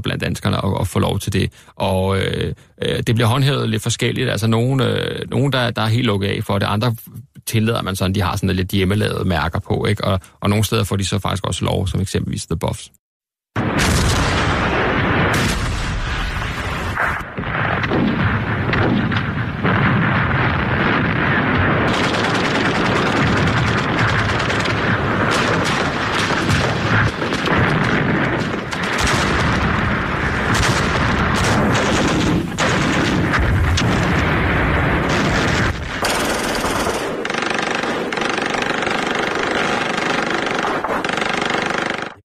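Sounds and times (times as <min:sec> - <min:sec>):
speech: 0:00.0 - 0:13.0
German artillery fire: 0:13.6 - 0:42.2
German tanks rumbling: 0:17.4 - 0:40.9.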